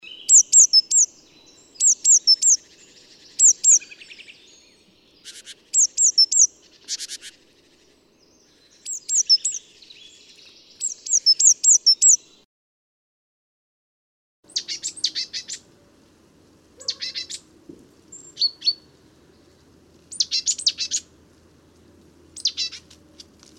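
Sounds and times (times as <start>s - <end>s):
great tit calls: 0.0s - 8.0s, 8.7s - 12.4s, 14.5s - 15.6s, 16.8s - 17.4s, 20.1s - 21.1s, 22.4s - 22.9s.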